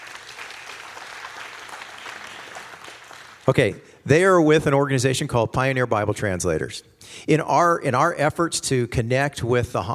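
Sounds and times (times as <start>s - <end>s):
audience clapping: 0.0s - 3.7s
speech: 3.5s - 9.9s.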